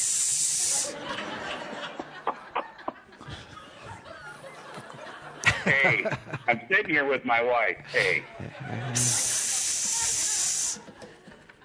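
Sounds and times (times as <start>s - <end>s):
loud hiss: 0.0s - 1.1s, 8.9s - 10.8s
laughter: 0.6s - 11.6s
speech: 0.9s - 2.0s, 5.7s - 9.2s.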